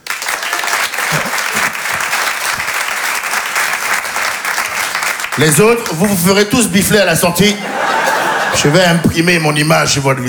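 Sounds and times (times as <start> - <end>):
audience applause: 0.0 - 9.4
laughter: 0.0 - 10.2
speech: 5.4 - 10.2.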